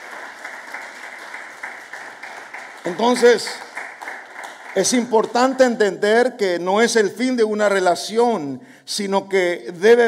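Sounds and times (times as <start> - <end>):
church congregation applauding: 0.0 - 6.0
speech: 2.8 - 3.7, 4.8 - 10.0.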